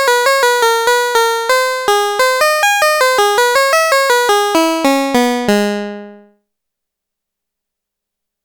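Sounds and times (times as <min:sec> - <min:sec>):
harpsichord patch on a Roland SH-101 synthesizer: 0:00.0 - 0:06.3.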